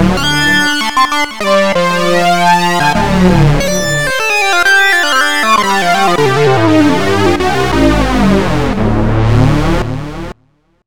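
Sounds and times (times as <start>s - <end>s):
unison super sync synthesizer: 0.1s - 10.3s.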